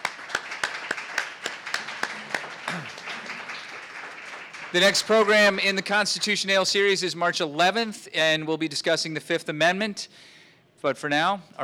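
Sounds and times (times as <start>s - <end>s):
audience applause: 0.0s - 6.4s
speech: 4.7s - 11.6s.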